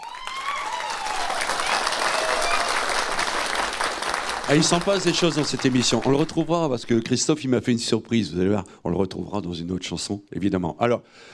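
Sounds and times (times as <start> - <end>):
audience applause: 0.0 - 7.0
speech: 4.5 - 11.3.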